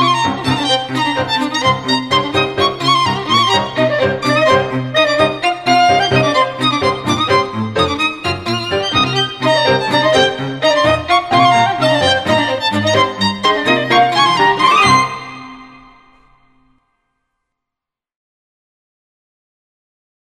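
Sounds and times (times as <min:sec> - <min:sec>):
folk quintet playing: 0:00.1 - 0:16.0.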